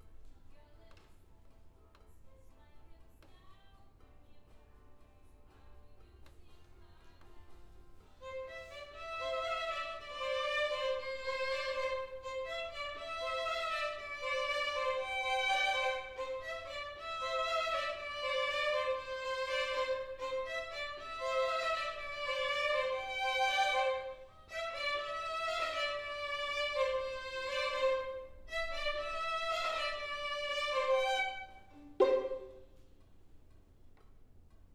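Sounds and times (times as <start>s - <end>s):
cello: 8.2s - 32.8s.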